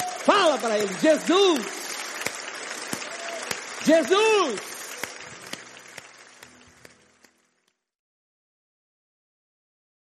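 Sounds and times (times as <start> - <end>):
audience applause: 0.0 - 7.8
speech: 0.2 - 1.8, 3.9 - 4.7.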